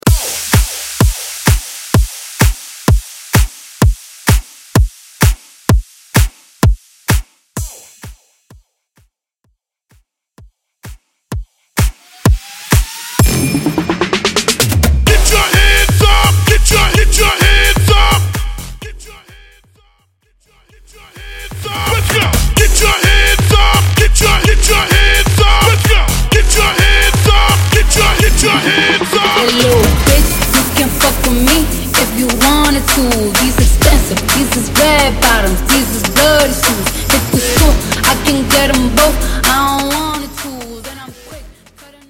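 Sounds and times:
EDM bootleg: 0.0s - 8.6s, 10.8s - 42.0s.

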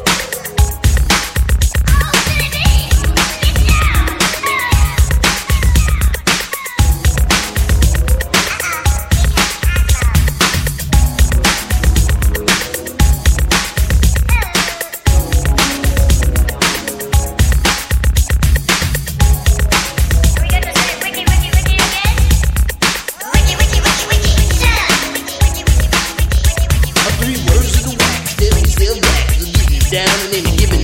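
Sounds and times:
80s hip hop drum beat: 0.0s - 30.8s.

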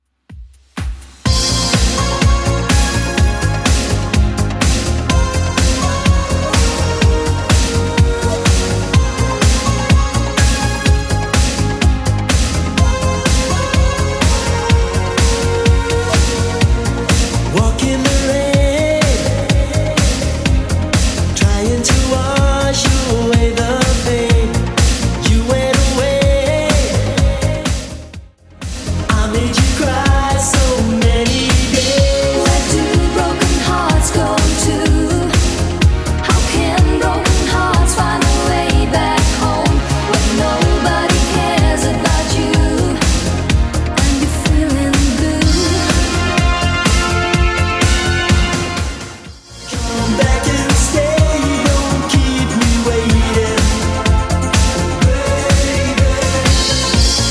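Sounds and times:
1980s 125 BPM retro electronic music: 0.3s - 57.2s.

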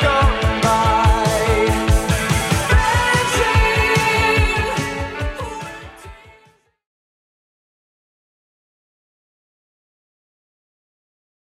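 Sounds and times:
1980s Redrum drum machine beat at 144 bpm: 0.0s - 6.3s.

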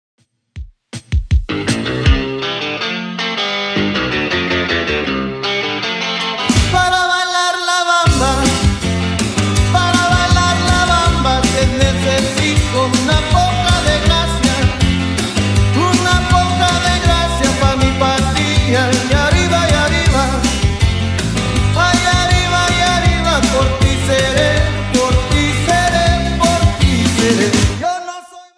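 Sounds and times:
1980s style music at 160 BPM: 0.9s - 28.1s.

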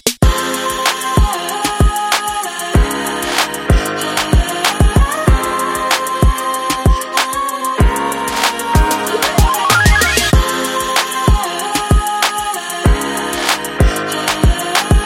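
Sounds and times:
Top 40 pop music: 0.2s - 15.0s.

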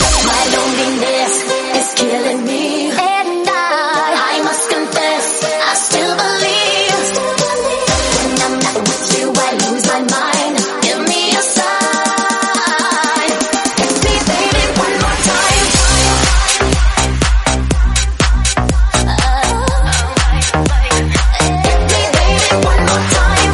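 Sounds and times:
tech house music in C minor: 0.0s - 23.5s.

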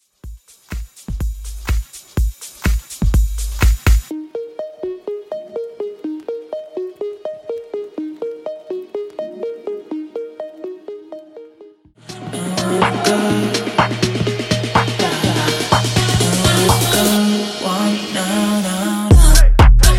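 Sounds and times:
tech house music: 0.0s - 19.9s.

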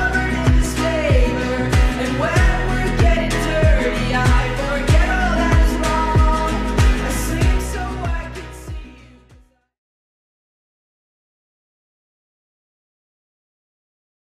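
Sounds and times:
Top 40 pop music: 0.0s - 9.6s.

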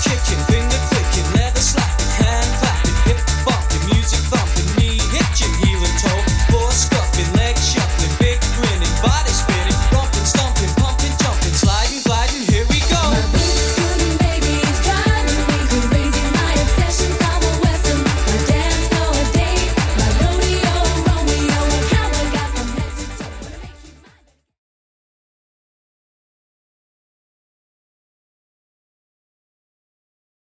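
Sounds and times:
drum machine beat: 0.0s - 23.9s.

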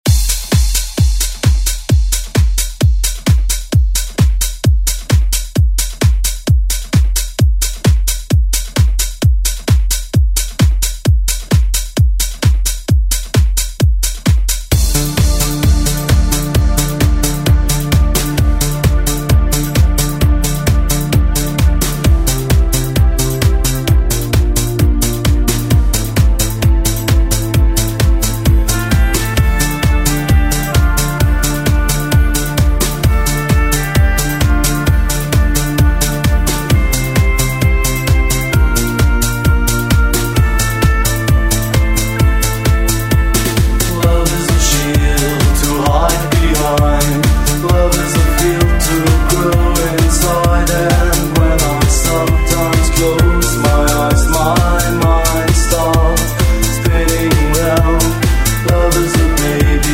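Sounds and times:
80s drum beat: 0.0s - 59.9s.

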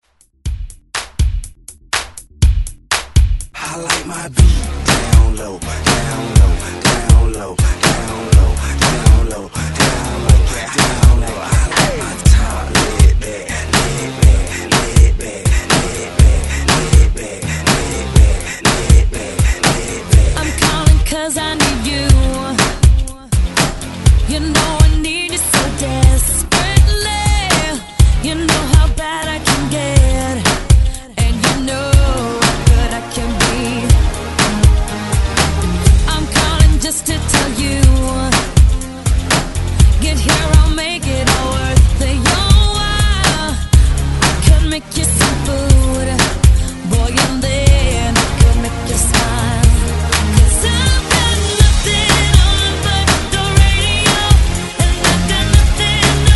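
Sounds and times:
hype drum loop: 0.0s - 56.3s.

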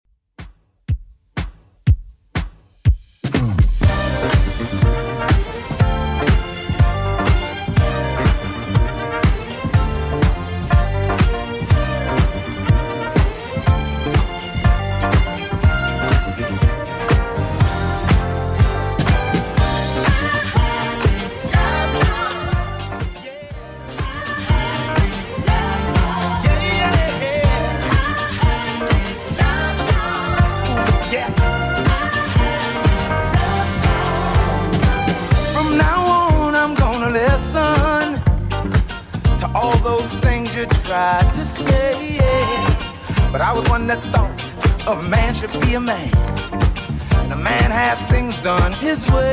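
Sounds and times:
1980s style music at 122 bpm: 0.4s - 49.3s.

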